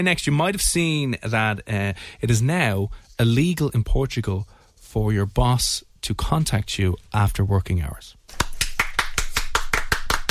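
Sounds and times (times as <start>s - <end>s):
speech: 0.0s - 8.4s
hosts clapping: 8.3s - 10.2s.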